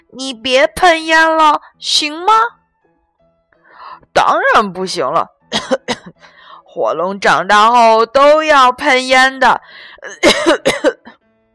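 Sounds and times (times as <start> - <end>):
speech: 0.1 - 2.6, 4.2 - 10.9
person coughing hoarsely: 5.5 - 6.2, 10.1 - 11.2.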